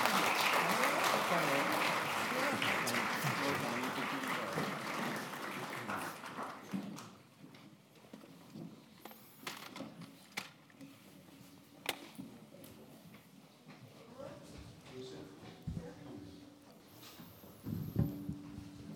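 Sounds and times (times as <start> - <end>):
audience applause: 0.0 - 7.0.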